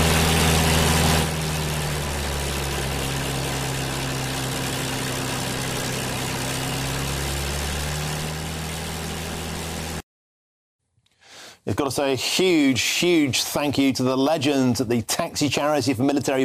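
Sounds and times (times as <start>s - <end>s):
Second World War Spitfire aircraft engine drone: 0.0s - 10.0s
speech: 11.6s - 16.4s.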